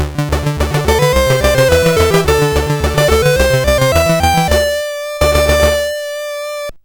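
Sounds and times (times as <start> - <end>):
SID CSG8580R5 chip game music: 0.0 - 6.8.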